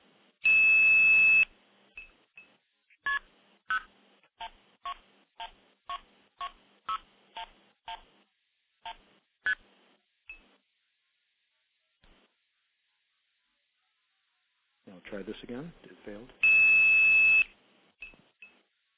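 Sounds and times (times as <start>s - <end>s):
long steady telephone tone burst: 0.5s - 1.5s, 16.5s - 17.5s
speech: 15.1s - 16.5s.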